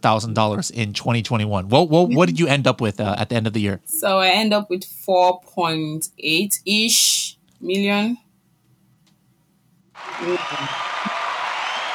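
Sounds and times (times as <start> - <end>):
speech: 0.0 - 8.2, 10.0 - 11.2
applause sound effect from a sound deck: 10.0 - 11.9.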